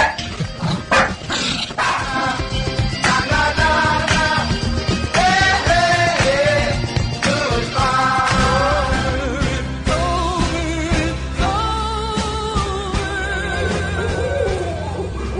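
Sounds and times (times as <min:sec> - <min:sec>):
loud music: 0:00.0 - 0:15.3
dog barking and yipping: 0:00.9 - 0:02.2.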